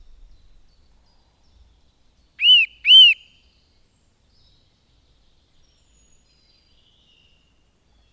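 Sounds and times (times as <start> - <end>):
Eurasian nuthatch giving loud piping whistles: 2.4 - 3.3.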